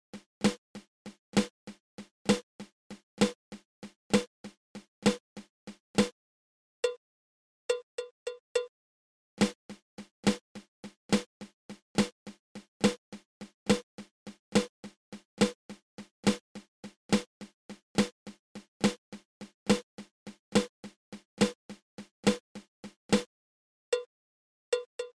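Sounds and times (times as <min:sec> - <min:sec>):
drum flam accent: 0:00.2 - 0:06.1, 0:09.4 - 0:15.6, 0:16.2 - 0:23.3.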